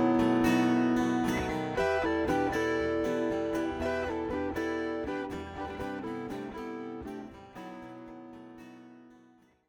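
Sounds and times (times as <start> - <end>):
distorted solo voice: 0.0 - 6.2
looper strumming: 0.0 - 9.4.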